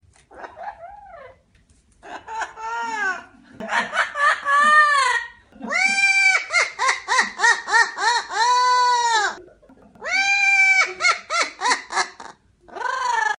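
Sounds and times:
evil laugh: 0:02.0 - 0:12.4.

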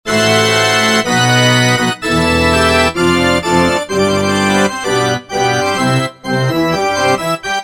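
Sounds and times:
wedding march music: 0:00.1 - 0:07.6.

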